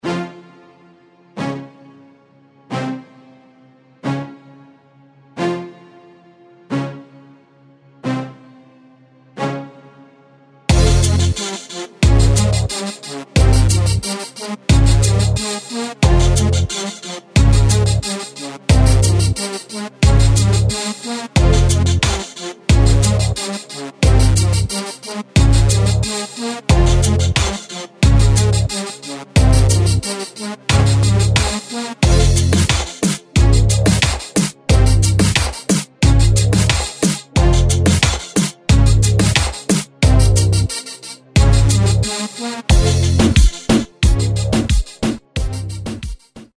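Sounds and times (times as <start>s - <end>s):
reggaeton music: 10.7s - 46.5s.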